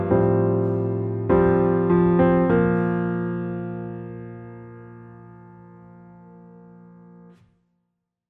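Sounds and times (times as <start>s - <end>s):
piano underscore: 0.0s - 7.4s.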